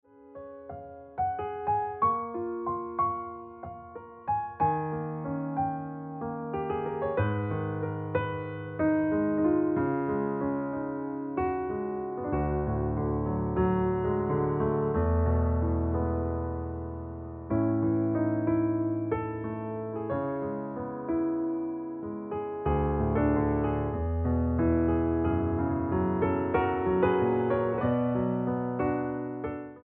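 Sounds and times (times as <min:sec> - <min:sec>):
piano music: 0:00.1 - 0:29.8.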